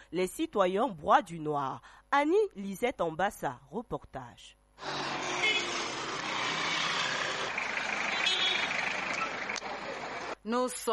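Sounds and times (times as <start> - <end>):
speech: 0.1 - 5.1, 10.4 - 10.9
vehicles passing: 4.8 - 10.4.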